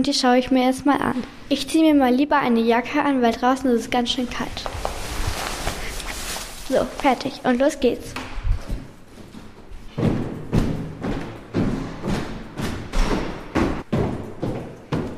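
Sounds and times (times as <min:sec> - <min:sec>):
speech: 0:00.0 - 0:04.8, 0:06.7 - 0:08.2
footsteps walking down stairs: 0:04.3 - 0:06.4, 0:08.2 - 0:15.1.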